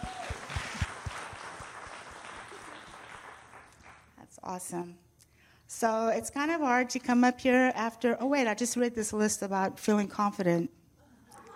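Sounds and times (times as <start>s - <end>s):
audience clapping: 0.0s - 4.2s
speech: 4.5s - 5.1s, 5.7s - 10.8s.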